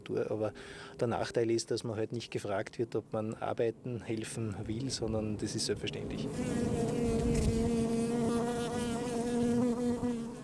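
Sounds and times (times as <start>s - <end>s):
speech: 0.1s - 7.5s
bees buzzing: 6.0s - 10.4s.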